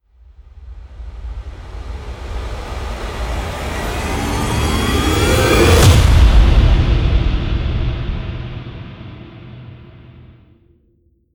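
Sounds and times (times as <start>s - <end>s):
alarming trailer impact: 1.8s - 10.4s.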